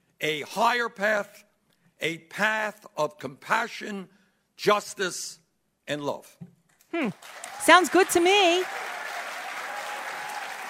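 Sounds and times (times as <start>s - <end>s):
speech: 0.2s - 8.8s
audience applause: 7.2s - 10.6s.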